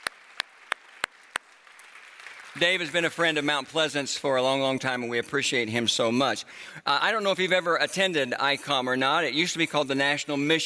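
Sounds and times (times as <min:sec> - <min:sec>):
audience clapping at a church service: 0:00.0 - 0:03.8
speech: 0:02.6 - 0:10.6.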